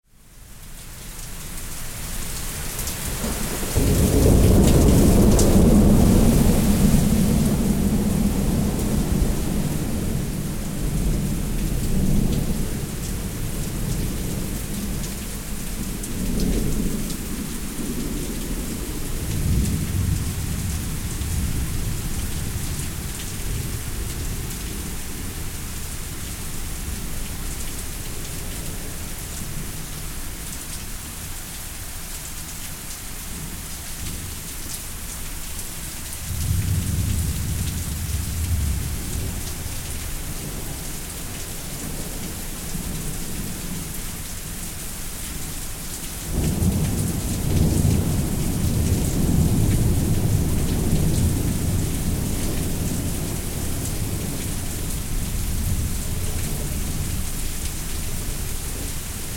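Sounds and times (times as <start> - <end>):
thunderstorm: 3.1 - 27.1, 36.2 - 43.9, 46.2 - 59.3.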